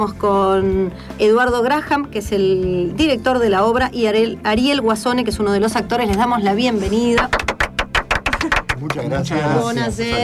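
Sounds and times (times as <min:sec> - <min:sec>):
speech: 0:00.0 - 0:07.4, 0:08.8 - 0:10.2
audience applause: 0:07.3 - 0:09.4.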